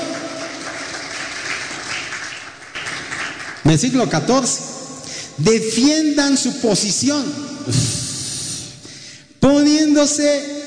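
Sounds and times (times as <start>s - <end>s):
audience applause: 0.0s - 3.7s
speech: 3.6s - 4.7s, 5.4s - 8.0s, 10.0s - 10.5s.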